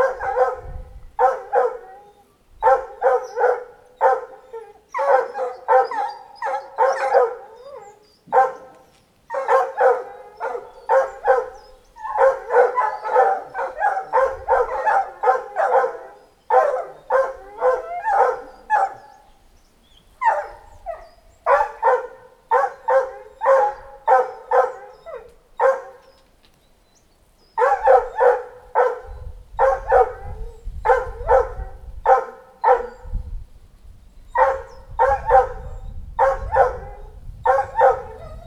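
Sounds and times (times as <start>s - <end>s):
dogs: 0.0s - 19.3s, 20.2s - 26.4s, 27.6s - 33.2s, 34.3s - 38.4s.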